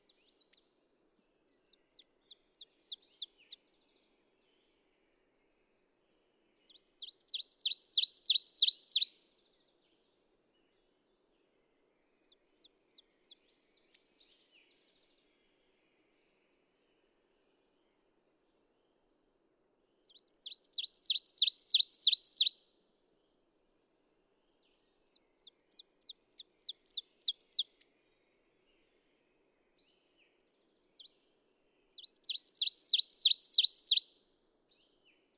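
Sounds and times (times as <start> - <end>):
ovenbird singing: 6.7 - 9.1, 20.1 - 22.6, 25.2 - 27.8, 32.0 - 34.1.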